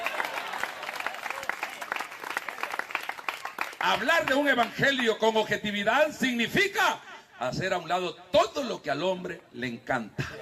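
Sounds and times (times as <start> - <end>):
audience applause: 0.0 - 4.7
speech: 3.8 - 10.4.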